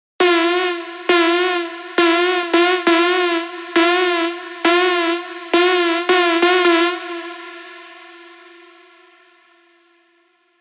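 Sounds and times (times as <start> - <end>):
big room techno drops: 0.2 - 7.4.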